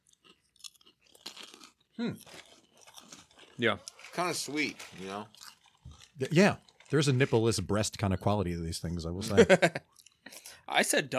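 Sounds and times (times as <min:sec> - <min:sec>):
crunching on shrimp tempura: 0:00.0 - 0:07.6
speech: 0:02.0 - 0:02.4, 0:03.6 - 0:05.4, 0:06.2 - 0:09.9, 0:10.8 - 0:11.1
laughter: 0:09.2 - 0:09.8.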